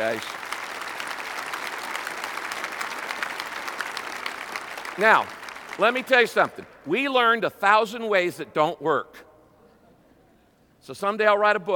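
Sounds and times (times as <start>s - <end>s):
speech: 0.0s - 0.4s, 5.0s - 9.2s, 10.9s - 11.7s
audience applause: 0.0s - 6.8s.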